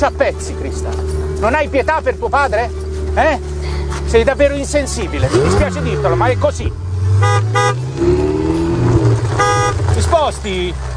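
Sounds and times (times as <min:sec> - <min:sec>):
speech: 0:00.0 - 0:08.4, 0:09.7 - 0:10.9
Ferrari engine running with a steady hum: 0:00.0 - 0:10.9
Ferrari car horn honking: 0:04.8 - 0:10.2.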